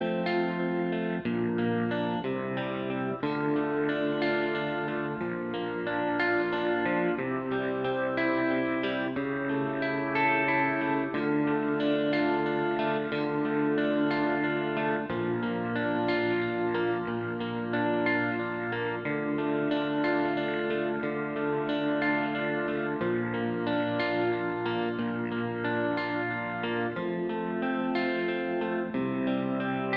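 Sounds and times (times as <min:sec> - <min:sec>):
instrumental choral piece: 0:00.0 - 0:29.9.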